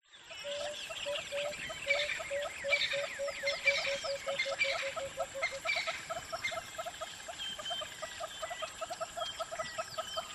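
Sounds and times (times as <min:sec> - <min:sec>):
red-billed hornbill clucking: 0:00.4 - 0:10.3.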